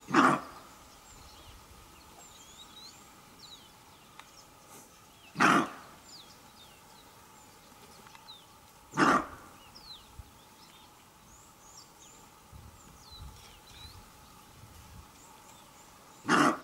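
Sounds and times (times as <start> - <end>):
antelope barking in acacia thickets: 0.0 - 0.7, 5.3 - 6.0, 8.9 - 9.7, 16.2 - 16.6.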